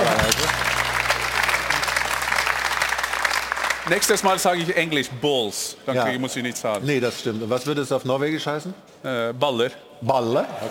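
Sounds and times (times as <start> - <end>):
studio audience applause: 0.0 - 5.2
speech: 3.9 - 10.6.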